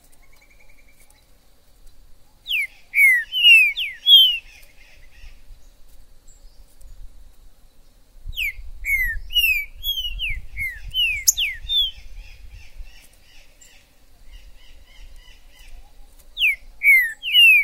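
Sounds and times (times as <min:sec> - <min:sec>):
green-winged saltator song: 0:02.5 - 0:04.4, 0:08.4 - 0:12.0, 0:16.4 - 0:17.6.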